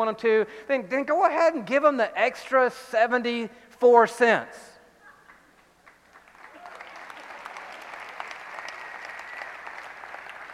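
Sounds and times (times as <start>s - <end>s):
speech: 0.0s - 4.7s
audience applause: 5.8s - 10.5s.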